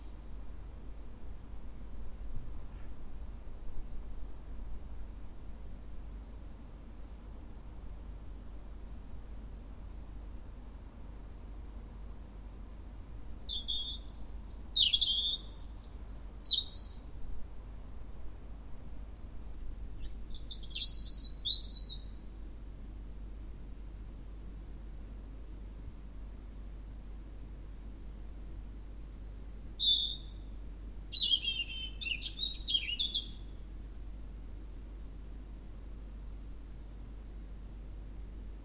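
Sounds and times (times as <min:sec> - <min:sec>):
faint background hiss: 0:00.0 - 0:38.6
European robin singing: 0:13.0 - 0:17.3, 0:20.0 - 0:22.4, 0:28.3 - 0:33.7.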